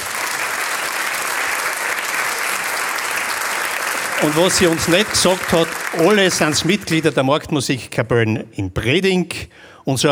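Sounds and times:
audience applause: 0:00.0 - 0:07.3
speech: 0:04.2 - 0:10.0.

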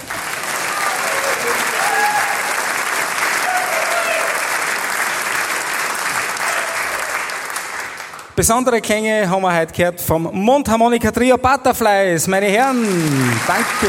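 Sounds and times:
audience applause: 0:00.0 - 0:08.4, 0:12.6 - 0:13.8
speech: 0:08.4 - 0:13.8.

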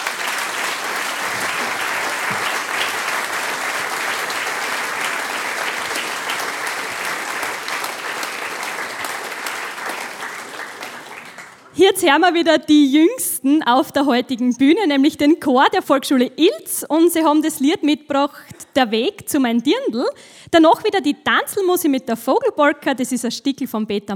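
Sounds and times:
audience applause: 0:00.0 - 0:11.8
speech: 0:11.8 - 0:24.1.

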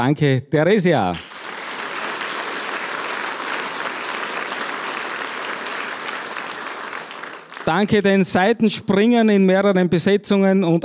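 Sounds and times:
speech: 0:00.0 - 0:01.3, 0:07.7 - 0:10.8
audience applause: 0:01.2 - 0:08.1.

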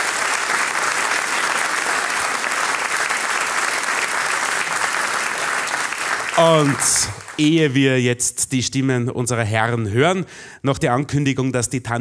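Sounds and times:
audience applause: 0:00.0 - 0:07.6
speech: 0:06.4 - 0:11.9.

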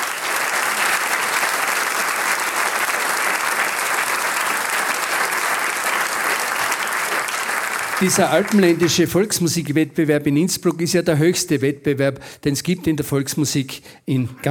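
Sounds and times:
audience applause: 0:00.0 - 0:09.7
speech: 0:08.0 - 0:14.4.

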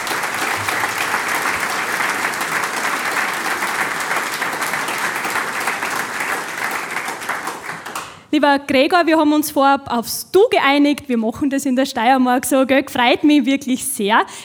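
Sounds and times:
audience applause: 0:00.0 - 0:08.2
speech: 0:08.4 - 0:14.4.

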